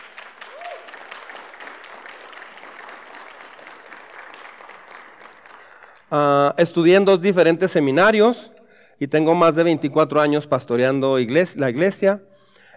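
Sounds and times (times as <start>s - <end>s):
audience applauding: 0.0s - 6.2s
speech: 6.1s - 12.3s.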